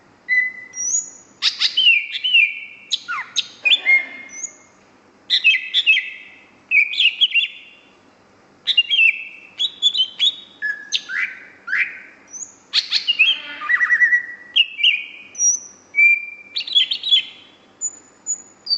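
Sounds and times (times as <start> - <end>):
greater green leafbird singing whistles and rattling trills: 0.3 - 4.7, 5.3 - 7.8, 8.7 - 18.7.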